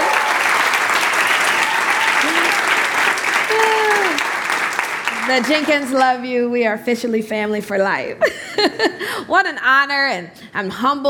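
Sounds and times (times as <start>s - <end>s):
whooping cheers: 0.0s - 4.6s
audience applause: 0.0s - 6.0s
speech: 5.3s - 11.0s.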